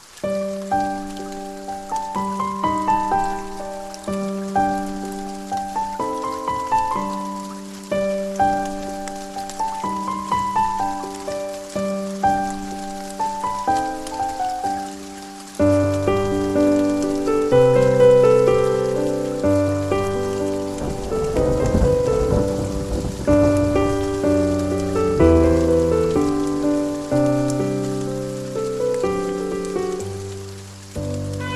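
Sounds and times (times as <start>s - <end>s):
piano: 0.0s - 31.5s
trombone: 31.4s - 31.5s.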